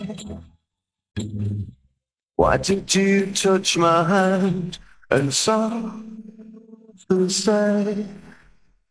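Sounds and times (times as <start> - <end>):
hand vocal: 2.4 - 8.6.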